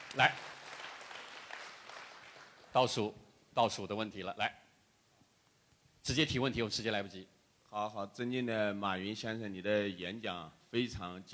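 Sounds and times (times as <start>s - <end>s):
audience applause: 0.0s - 2.8s
speech: 0.2s - 0.6s, 2.8s - 4.6s, 6.0s - 11.3s.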